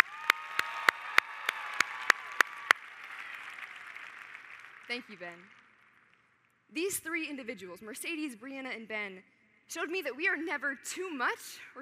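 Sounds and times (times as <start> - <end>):
audience hand claps: 0.0 - 6.2
speech: 4.9 - 5.6, 6.7 - 11.8.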